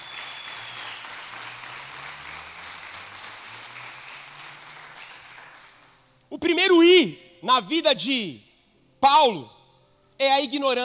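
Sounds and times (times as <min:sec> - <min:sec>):
audience applause: 0:00.0 - 0:06.1
speech: 0:06.3 - 0:08.4, 0:09.0 - 0:09.6, 0:10.2 - 0:10.8.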